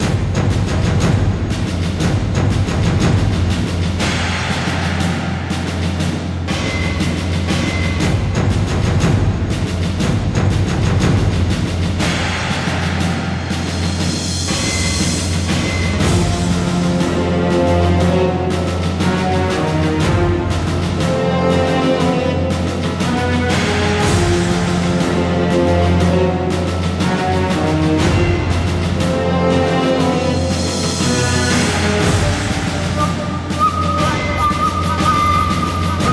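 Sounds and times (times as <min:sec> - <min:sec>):
music: 0:00.0 - 0:36.1.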